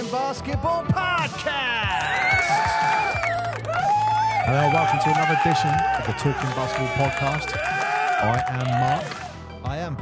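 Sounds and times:
speech: 0:00.1 - 0:02.1, 0:04.5 - 0:09.3
recorded crowd cheering effect in a basketball show intro: 0:01.5 - 0:09.4.

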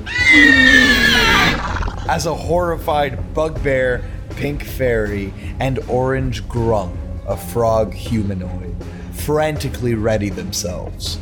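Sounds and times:
velociraptor screech: 0:00.0 - 0:02.1
speech: 0:00.3 - 0:00.9, 0:02.1 - 0:11.2.

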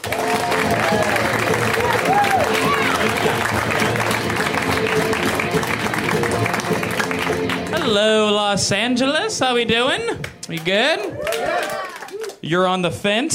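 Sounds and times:
comedy club audience applause: 0:00.0 - 0:08.0, 0:10.6 - 0:12.4
speech: 0:07.9 - 0:11.2, 0:12.5 - 0:13.3.

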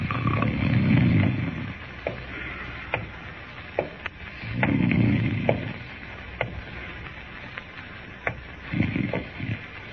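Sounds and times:
man snoring, pretending to sleep: 0:00.0 - 0:01.8, 0:04.4 - 0:05.8, 0:08.7 - 0:09.6.

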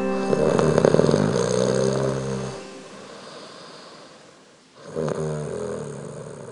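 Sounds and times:
loud snoring: 0:00.2 - 0:03.4, 0:04.8 - 0:06.4.

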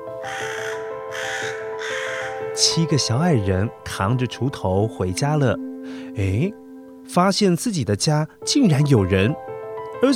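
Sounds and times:
crow cawing: 0:00.1 - 0:02.6
speech: 0:02.6 - 0:10.1.

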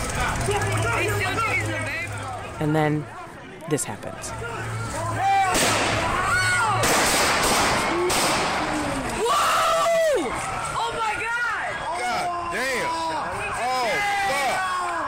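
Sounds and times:
people shouting frantically: 0:00.0 - 0:03.4, 0:04.3 - 0:15.0
speech: 0:02.6 - 0:05.7
gunshots fired by police officers: 0:05.5 - 0:06.2, 0:06.8 - 0:08.8.

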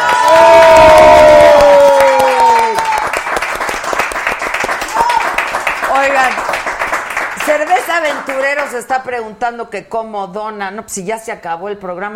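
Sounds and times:
audience applause: 0:00.0 - 0:08.8
speech: 0:08.0 - 0:12.1.

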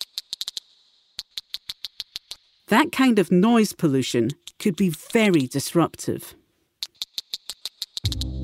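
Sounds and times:
whales clicking to communicate in the deep sea, Clarion-Clipperton Zone: 0:00.0 - 0:02.5, 0:04.2 - 0:05.6, 0:06.8 - 0:08.3
speech: 0:02.7 - 0:06.4.

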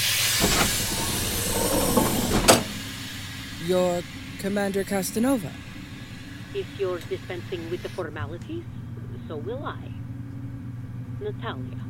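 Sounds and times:
inner doors opening: 0:00.0 - 0:03.0
speech: 0:03.7 - 0:05.7, 0:06.5 - 0:10.0, 0:11.2 - 0:11.8.

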